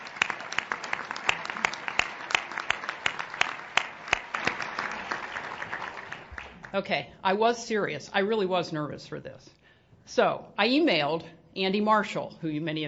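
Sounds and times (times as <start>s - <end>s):
audience applause: 0.0s - 6.7s
speech: 6.7s - 12.8s.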